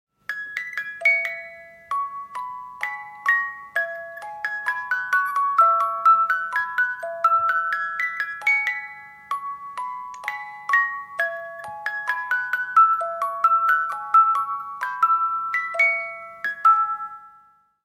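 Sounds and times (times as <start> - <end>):
music box melody: 0.2 - 17.8.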